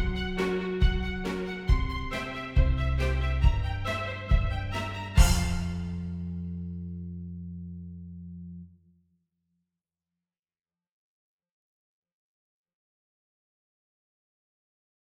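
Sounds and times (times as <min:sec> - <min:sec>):
horns playing a warm-up exercise in fifths: 0:00.0 - 0:06.1.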